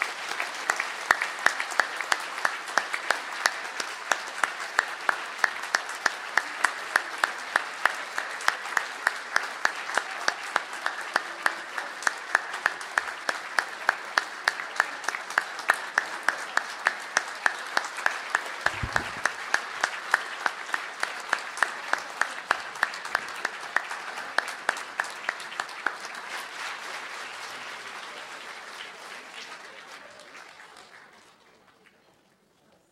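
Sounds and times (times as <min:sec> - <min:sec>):
large group clapping: 0:00.0 - 0:32.1.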